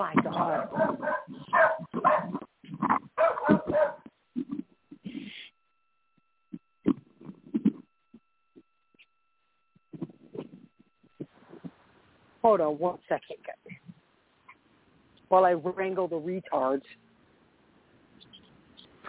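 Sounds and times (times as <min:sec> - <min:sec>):
speech: 0:00.0 - 0:00.9, 0:12.5 - 0:13.5, 0:15.3 - 0:17.0
dog barking: 0:00.4 - 0:04.1.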